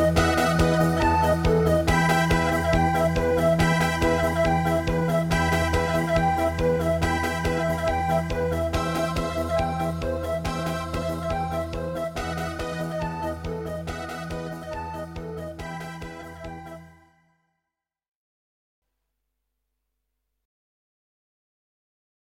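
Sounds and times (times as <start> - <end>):
instrumental music: 0.0 - 17.2.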